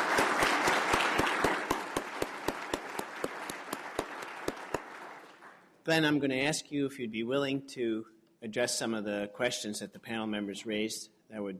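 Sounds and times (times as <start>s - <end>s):
audience applause for panel: 0.0s - 5.6s
speech: 5.8s - 11.5s.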